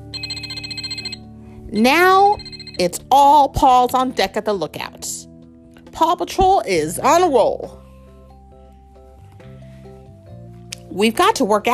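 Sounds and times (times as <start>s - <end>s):
handheld device ringing with an incoming call: 0.0s - 3.1s
speech: 1.7s - 5.3s, 6.0s - 7.8s, 11.0s - 11.7s.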